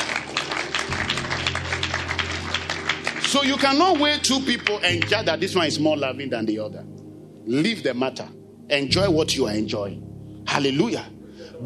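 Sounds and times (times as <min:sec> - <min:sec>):
audience clapping: 0:00.0 - 0:05.6
speech: 0:03.3 - 0:11.6.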